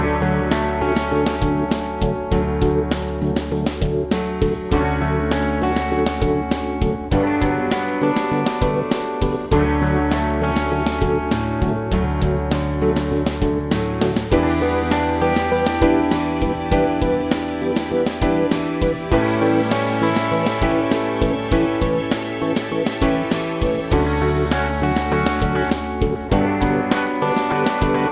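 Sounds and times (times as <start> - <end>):
backing track music: 0.0 - 28.0
bass playing scales: 0.0 - 28.0.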